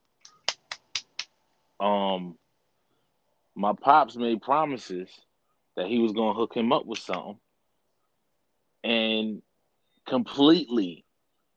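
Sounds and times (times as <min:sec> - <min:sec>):
hands clapping: 0:00.2 - 0:01.3, 0:06.9 - 0:07.3
speech: 0:01.8 - 0:02.4, 0:03.6 - 0:07.4, 0:08.8 - 0:09.5, 0:10.1 - 0:11.0.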